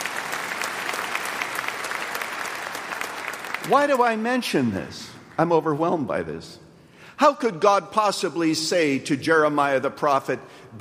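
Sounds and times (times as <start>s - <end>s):
audience clapping: 0.0s - 5.5s
speech: 3.7s - 6.6s, 7.2s - 10.8s.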